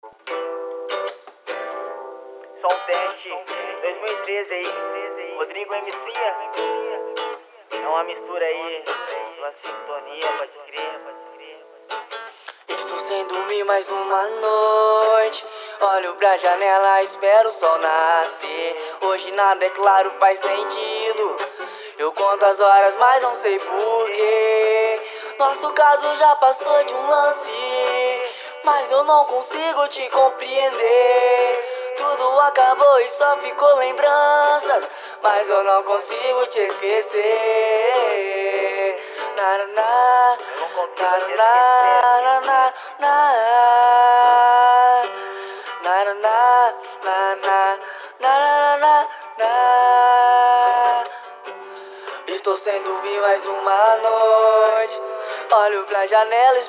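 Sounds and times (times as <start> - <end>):
person playing acoustic guitar: 0.0 - 56.6.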